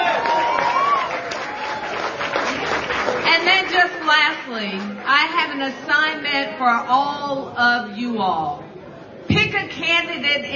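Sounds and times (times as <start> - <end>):
crowd clapping: 0.0 - 5.0
speech: 4.6 - 8.6, 9.5 - 10.5.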